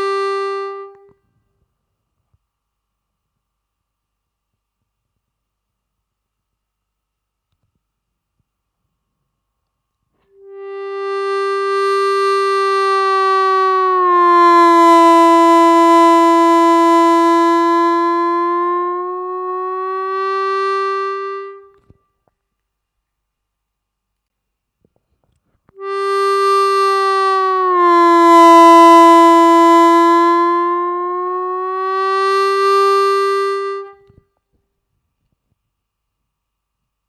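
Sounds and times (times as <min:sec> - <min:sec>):
harmonica bend practice track: 0:00.0 - 0:01.0, 0:10.4 - 0:21.8, 0:25.8 - 0:34.1.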